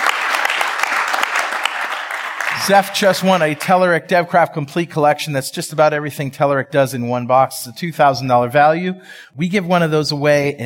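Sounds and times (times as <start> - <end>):
round of applause: 0.0 - 3.6
speech: 2.6 - 10.6.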